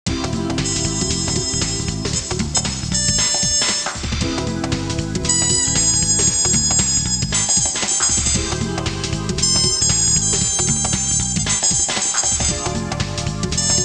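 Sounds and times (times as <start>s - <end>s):
jazz music ringtone: 0.5s - 13.8s.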